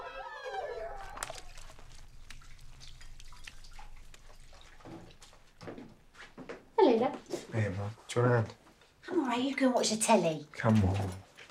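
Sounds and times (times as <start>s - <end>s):
washing dishes: 0.8s - 6.2s
speech: 7.8s - 8.6s, 9.4s - 11.4s.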